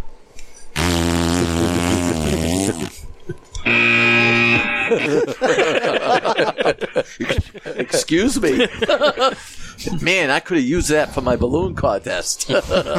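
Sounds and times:
comical horn blast: 0:00.8 - 0:03.0, 0:03.6 - 0:05.4
laughter: 0:01.3 - 0:03.7, 0:04.3 - 0:09.5, 0:12.3 - 0:12.9
speech: 0:04.9 - 0:12.9.

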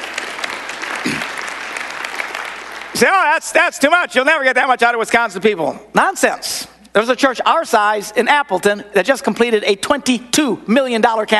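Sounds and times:
people clapping: 0:00.0 - 0:03.4
speech: 0:03.0 - 0:11.3.

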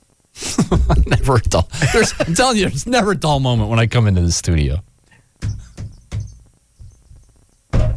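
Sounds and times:
laughter: 0:00.4 - 0:03.2
speech: 0:00.7 - 0:04.9
counter squeaking: 0:05.4 - 0:07.9.

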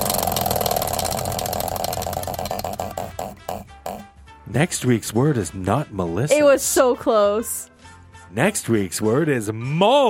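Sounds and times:
prize wheel spinning: 0:00.0 - 0:04.0
speech: 0:04.5 - 0:07.7, 0:08.4 - 0:10.0.

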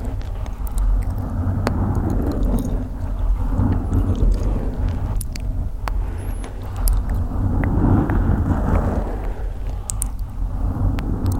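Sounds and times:
deep constant rumble: 0:00.0 - 0:11.3
scratching on a microphone: 0:00.0 - 0:11.3
small sharp clicks: 0:00.0 - 0:11.3
soft mouth ticks: 0:00.0 - 0:11.3.

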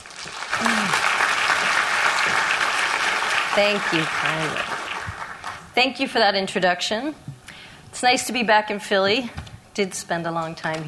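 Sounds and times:
audience applause welcoming a doctor to give a talk: 0:00.0 - 0:05.7
speech: 0:03.6 - 0:04.8, 0:05.8 - 0:07.2, 0:08.0 - 0:10.8.

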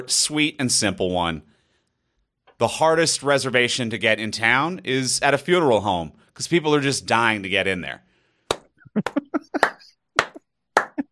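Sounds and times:
speech: 0:00.0 - 0:01.5, 0:02.6 - 0:08.1, 0:09.0 - 0:09.6
golf clap: 0:08.5 - 0:11.0
laughter: 0:08.8 - 0:11.1.

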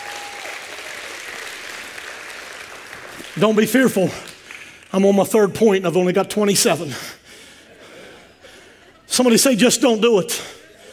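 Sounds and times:
audience hand clapping: 0:00.0 - 0:05.2
speech: 0:03.4 - 0:04.3, 0:04.9 - 0:07.2, 0:09.2 - 0:10.6
laughter: 0:07.4 - 0:10.9.

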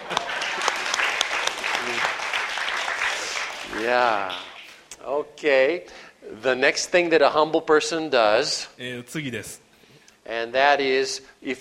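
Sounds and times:
audience applause: 0:00.0 - 0:04.8
speech: 0:03.8 - 0:09.6, 0:10.3 - 0:11.6.

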